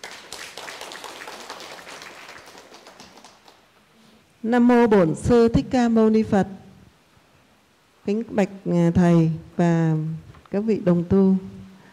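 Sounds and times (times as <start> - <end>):
audience applause: 0.0 - 3.7
speech: 4.4 - 6.6, 8.0 - 11.6.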